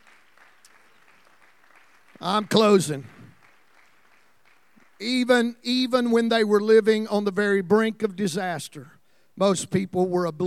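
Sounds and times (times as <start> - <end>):
audience clapping hands: 0.0 - 5.6
speech: 2.2 - 3.2, 5.0 - 10.4.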